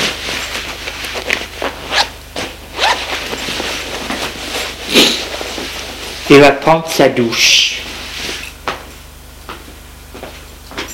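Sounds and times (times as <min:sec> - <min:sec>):
fabric rustling as someone undresses: 0:00.0 - 0:06.3
clothing zipper pulls as someone undresses: 0:01.9 - 0:02.1, 0:02.8 - 0:03.1
speech: 0:06.3 - 0:07.7.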